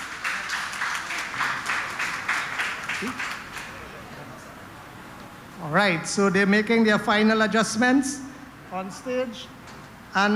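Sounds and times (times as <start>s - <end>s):
audience clapping to welcome pupils of a Hindu school onto a stage: 0.0s - 4.1s
speech: 3.0s - 3.4s, 5.6s - 10.3s.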